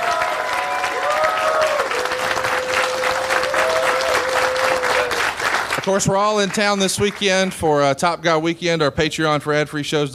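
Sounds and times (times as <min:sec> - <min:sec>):
live audience applause: 0:00.0 - 0:07.6
speech: 0:05.9 - 0:10.1.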